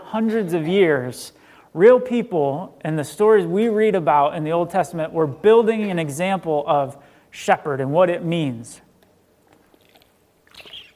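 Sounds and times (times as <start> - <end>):
speech: 0.1 - 8.8
faint sipping and mouth sounds: 9.4 - 10.9
squeaky water bottle squeaking during drinking: 9.5 - 10.9.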